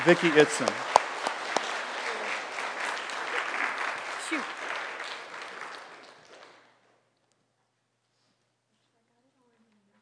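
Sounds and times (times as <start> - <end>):
speech: 0.0 - 0.9
Baptist church congregation applauding: 0.0 - 6.8.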